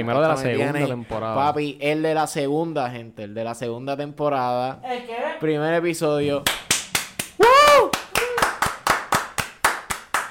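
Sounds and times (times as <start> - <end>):
speech: 0.0 - 6.7
hand clapping: 6.4 - 10.2.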